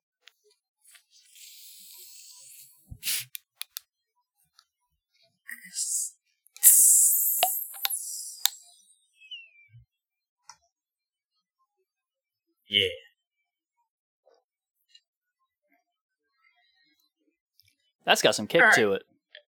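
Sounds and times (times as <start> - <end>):
can of Moon Mist Blue soda cracking open: 6.6 - 8.6
speech: 12.7 - 13.0, 18.1 - 19.1.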